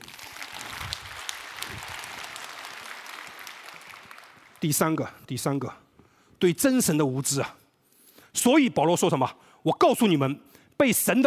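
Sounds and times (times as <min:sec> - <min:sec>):
audience clapping: 0:00.0 - 0:05.0
speech: 0:04.6 - 0:05.8, 0:06.4 - 0:07.6, 0:08.4 - 0:11.2.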